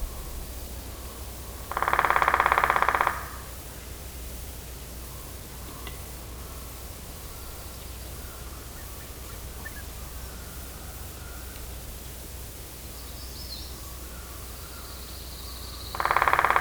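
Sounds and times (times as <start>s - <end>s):
woodpecker rattling: 1.6s - 3.5s, 7.2s - 10.8s, 15.9s - 16.5s.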